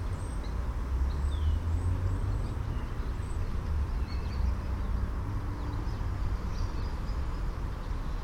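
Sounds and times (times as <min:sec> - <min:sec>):
birds in a town park: 0:00.0 - 0:08.2
road noise in background: 0:00.0 - 0:08.2.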